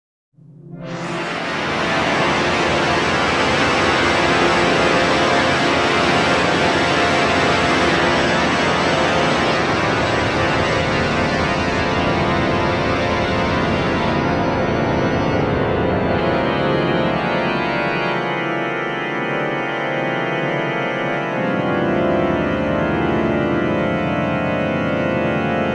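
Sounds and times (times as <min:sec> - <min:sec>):
organ piece: 0:00.8 - 0:25.7.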